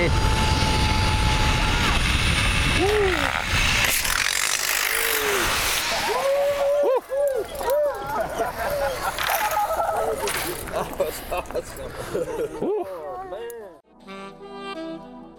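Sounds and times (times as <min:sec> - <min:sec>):
zip line pulley whirring: 0:00.1 - 0:11.6
excited whoops and shouts: 0:05.2 - 0:10.3
laughter: 0:06.0 - 0:13.8.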